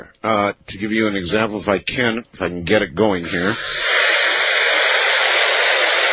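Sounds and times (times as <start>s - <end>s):
speech: 0.0s - 4.2s
radio white noise: 3.1s - 6.1s.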